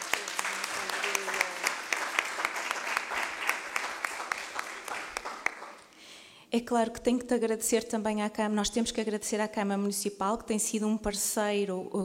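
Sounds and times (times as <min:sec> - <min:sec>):
round of applause: 0:00.0 - 0:05.9
speech: 0:06.5 - 0:12.0.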